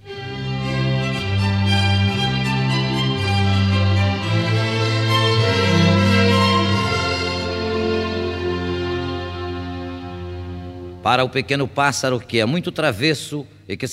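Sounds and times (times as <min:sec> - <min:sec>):
string quartet playing a lyrical theme: 0:00.0 - 0:11.2
speech: 0:11.1 - 0:13.9.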